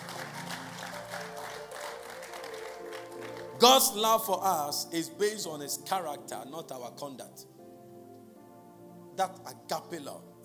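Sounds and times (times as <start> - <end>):
large audience clapping in praise: 0.0 - 4.0
speech: 3.6 - 7.5, 9.2 - 10.3.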